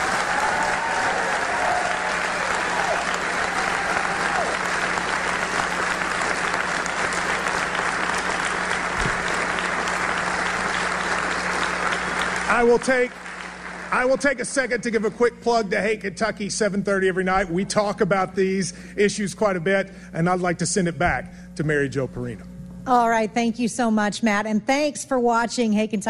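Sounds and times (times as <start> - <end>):
crowd applause: 0.0 - 14.9
speech: 12.6 - 13.2, 13.9 - 26.0.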